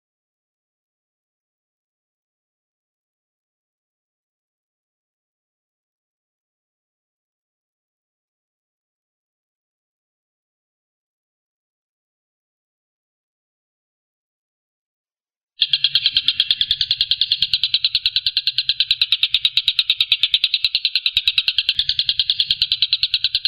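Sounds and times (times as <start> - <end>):
Stork-billed kingfisher rattling: 15.6 - 23.4.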